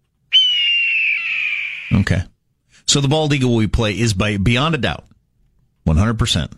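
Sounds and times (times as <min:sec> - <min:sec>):
red-tailed hawk call: 0:00.3 - 0:02.0
speech: 0:01.9 - 0:05.1, 0:05.9 - 0:06.5.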